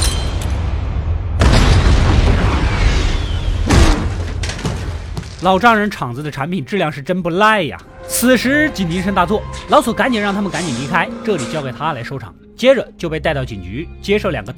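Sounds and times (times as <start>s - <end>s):
landmine explosion: 0.1s - 5.4s
speech: 5.4s - 14.5s.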